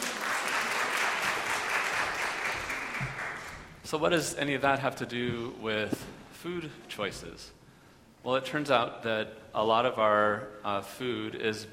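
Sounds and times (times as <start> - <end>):
audience applause: 0.0 - 3.7
speech: 3.9 - 7.6, 8.2 - 11.7.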